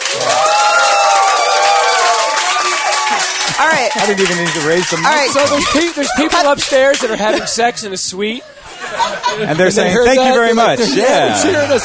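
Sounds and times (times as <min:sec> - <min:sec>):
audience applause: 0:00.0 - 0:07.4
laughter: 0:03.0 - 0:11.8
speech: 0:03.8 - 0:11.8.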